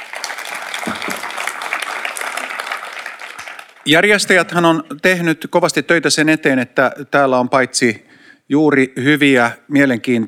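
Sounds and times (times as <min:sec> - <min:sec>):
audience applause: 0:00.0 - 0:04.3
speech: 0:03.9 - 0:10.2.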